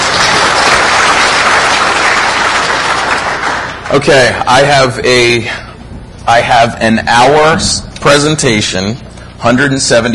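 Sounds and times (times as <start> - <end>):
audience applause: 0.0 - 4.2
speech: 3.9 - 5.6, 6.3 - 10.1.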